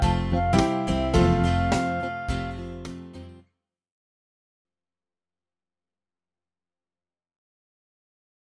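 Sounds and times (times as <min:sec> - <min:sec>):
karaoke folk tune backing track: 0:00.0 - 0:03.3.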